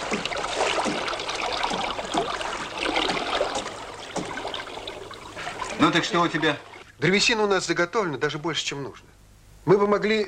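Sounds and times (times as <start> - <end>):
river water flowing, readied for timber rafting: 0.0 - 7.0
speech: 5.9 - 10.2.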